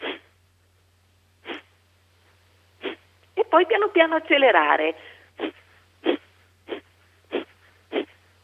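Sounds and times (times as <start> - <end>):
forceful exhalations through the nostrils in a breathing exercise: 0.0 - 0.4, 1.4 - 1.8, 2.8 - 3.1, 5.0 - 8.4
speech: 3.5 - 5.6.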